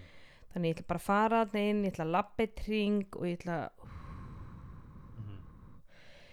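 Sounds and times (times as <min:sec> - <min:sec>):
speech: 0:00.5 - 0:03.9
slow calming exhalation: 0:03.8 - 0:06.3.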